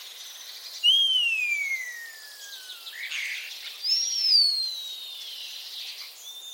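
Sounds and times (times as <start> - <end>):
common starling whistles: 0.8 - 5.3.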